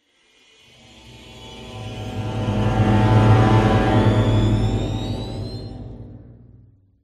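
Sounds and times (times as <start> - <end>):
musical stinger: 1.2 - 6.6.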